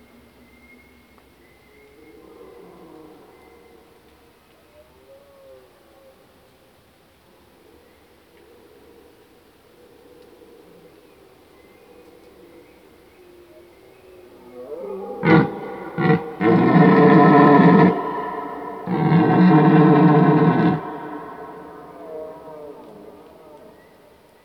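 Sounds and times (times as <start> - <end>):
red deer roaring: 14.8 - 23.8.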